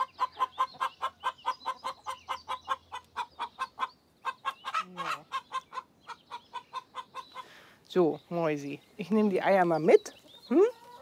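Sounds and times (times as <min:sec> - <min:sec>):
hen squawk sliding downward: 0:00.0 - 0:07.6
hens clucking while laying eggs: 0:00.0 - 0:10.9
speech: 0:07.9 - 0:10.6.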